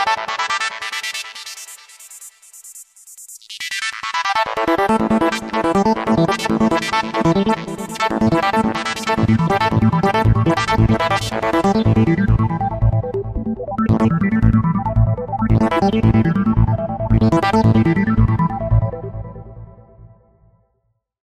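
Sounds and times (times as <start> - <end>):
Kawai K5000S synthesizer formant sounds: 4.5 - 19.8.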